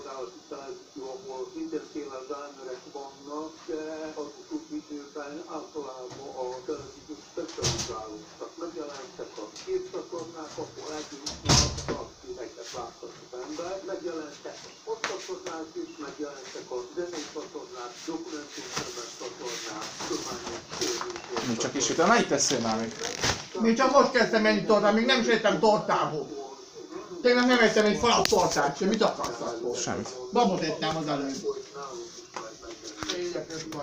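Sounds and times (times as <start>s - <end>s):
people conversing: 0.0s - 33.8s
door closing with a thud: 7.6s - 8.0s, 11.3s - 12.1s
speech: 17.8s - 20.6s, 21.5s - 26.4s, 27.2s - 31.5s.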